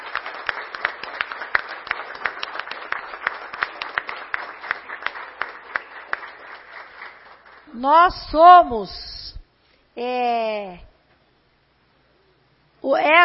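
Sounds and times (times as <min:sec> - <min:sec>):
audience applause: 0:00.0 - 0:07.7
speech: 0:07.8 - 0:09.2, 0:10.0 - 0:10.9, 0:12.8 - 0:13.2.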